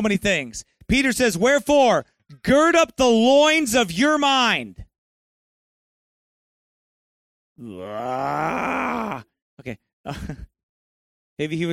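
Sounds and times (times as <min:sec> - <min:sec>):
speech: 0:00.0 - 0:04.8, 0:07.6 - 0:10.5, 0:11.4 - 0:11.7
man growling: 0:07.6 - 0:09.3.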